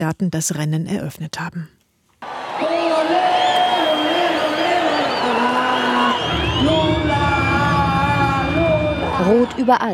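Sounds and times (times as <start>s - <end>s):
speech: 0.0s - 1.8s, 9.2s - 9.9s
packed stadium crowd of supporters cheering and whooping: 2.2s - 9.9s.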